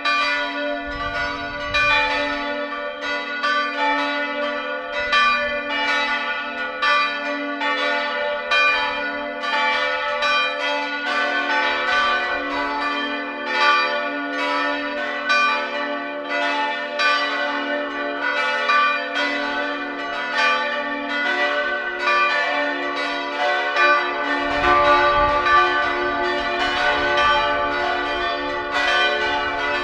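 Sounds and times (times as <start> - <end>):
parish church bells ringing in Freienbach: 0.0 - 29.8.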